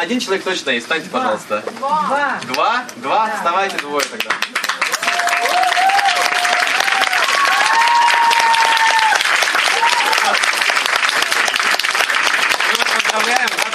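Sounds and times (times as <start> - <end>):
speech: 0.0 - 4.5
crowd applause for birthday people: 4.0 - 13.7
people calling out and cheering: 4.6 - 13.7.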